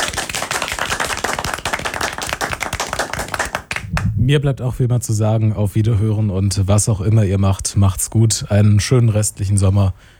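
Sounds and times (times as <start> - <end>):
live audience applause: 0.0 - 3.9
speech: 4.3 - 10.1.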